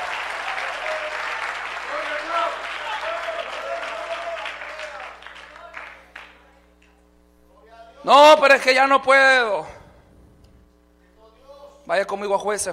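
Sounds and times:
audience applause: 0.0s - 6.4s
speech: 8.0s - 9.8s, 11.9s - 12.7s.

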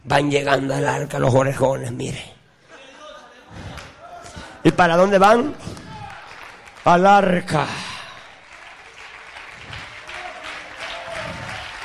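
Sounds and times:
speech: 0.1s - 2.4s, 4.6s - 5.8s, 6.8s - 7.9s
audience applause: 5.6s - 11.8s.

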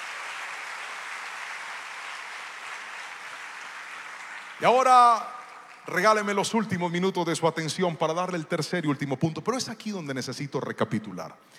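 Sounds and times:
audience applauding: 0.0s - 6.8s
speech: 4.6s - 11.5s.

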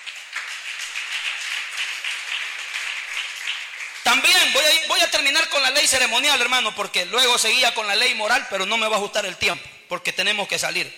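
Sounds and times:
audience applause: 0.0s - 4.6s
speech: 4.1s - 10.9s.

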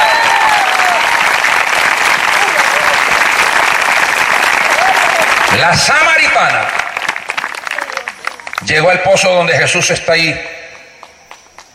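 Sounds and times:
audience applause: 0.0s - 8.9s
speech: 5.6s - 6.8s, 8.6s - 10.5s.

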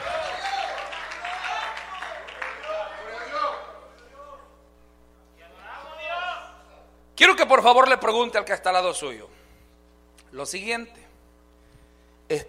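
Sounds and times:
audience applauding: 0.0s - 4.2s
speech: 7.2s - 9.4s, 10.3s - 11.0s, 12.3s - 12.4s.

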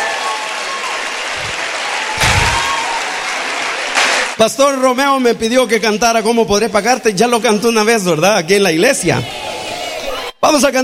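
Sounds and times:
audience applause: 0.0s - 4.4s
speech: 4.4s - 9.5s, 10.4s - 10.8s.

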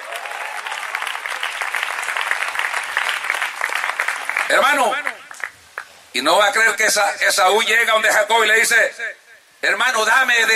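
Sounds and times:
audience applause: 0.0s - 5.6s
speech: 4.5s - 5.2s, 6.1s - 10.5s.

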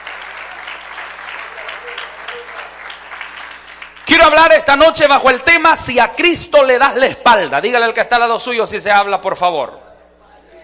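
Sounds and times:
audience applauding: 0.0s - 4.1s
speech: 4.2s - 9.8s.

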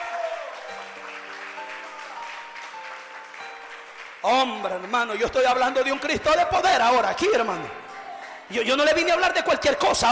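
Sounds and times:
audience applause: 0.0s - 6.2s
sustained keyboard chord: 0.0s - 7.9s
speech: 4.2s - 7.8s, 8.5s - 10.1s.

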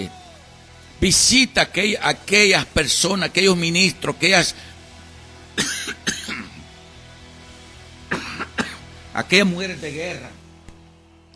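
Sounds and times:
speech: 1.0s - 4.7s, 5.6s - 5.8s, 9.2s - 10.4s
person coughing with throat irritated by a fan: 5.6s - 6.6s, 8.1s - 8.8s
throat clearing: 8.1s - 8.8s.

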